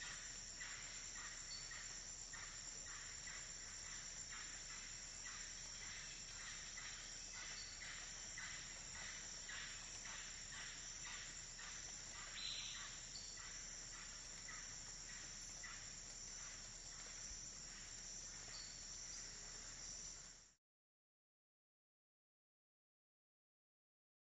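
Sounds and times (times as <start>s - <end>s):
jungle ambience: 0.0s - 20.6s.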